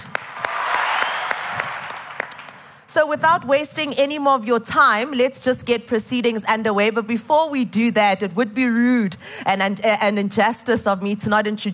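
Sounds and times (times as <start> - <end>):
audience applause: 0.0 - 2.7
speech: 3.0 - 11.7.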